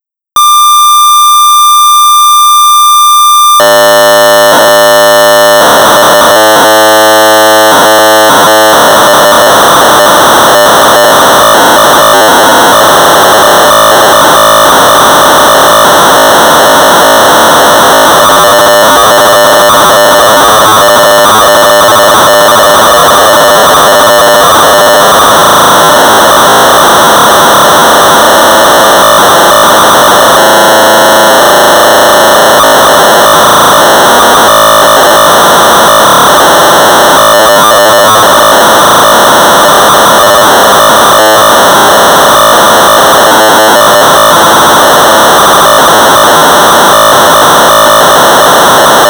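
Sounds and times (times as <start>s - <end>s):
1200 baud modem data tones: 0.0s - 49.0s.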